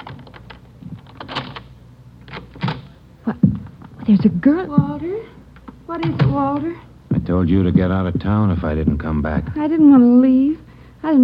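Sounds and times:
apartment door being opened in an old radio drama: 0.0 - 6.8
speech: 4.1 - 5.3, 5.9 - 11.2.

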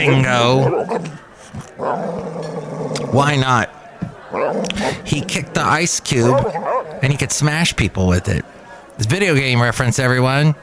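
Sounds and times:
speech: 0.0 - 2.5, 3.1 - 10.6
boxer dog growling: 0.0 - 3.3, 4.3 - 7.4.

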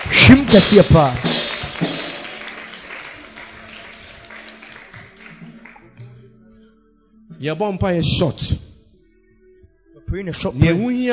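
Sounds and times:
audience clapping: 0.0 - 6.2
speech: 0.2 - 1.2, 7.4 - 8.7, 10.1 - 11.1.

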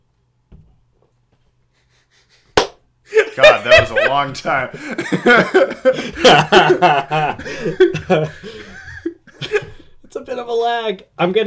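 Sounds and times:
hand clap: 2.6 - 2.8
laughter: 3.1 - 9.9
speech: 3.4 - 8.7, 10.3 - 11.4.

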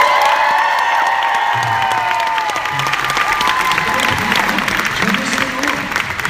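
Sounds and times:
audience applause and cheering with whoops at a panel: 0.0 - 6.2.

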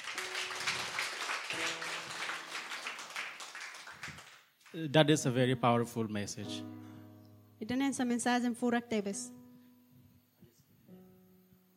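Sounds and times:
audience applause: 0.0 - 4.9
speech: 4.7 - 6.9, 7.6 - 9.4.

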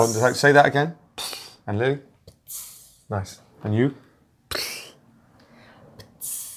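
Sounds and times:
voice imitating an explosion: 0.0 - 0.4, 1.2 - 1.6, 2.4 - 3.1, 6.2 - 6.5
speech: 0.0 - 4.7.

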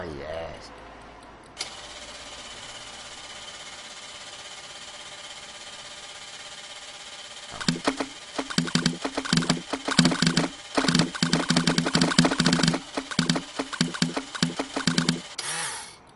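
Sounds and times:
blender running: 7.5 - 15.8.

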